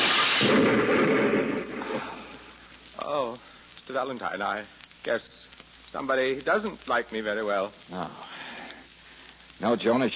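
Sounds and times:
hand grenade explosion radio drama sound effect: 0.0 - 2.4
speech: 0.4 - 1.7, 3.1 - 8.3, 9.6 - 10.1.

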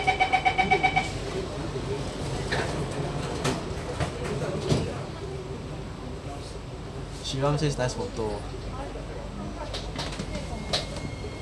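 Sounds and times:
metro electronic warning beeps: 0.0 - 1.2
metro train doors closing: 0.0 - 5.2, 9.6 - 11.3
speech: 7.4 - 8.7.

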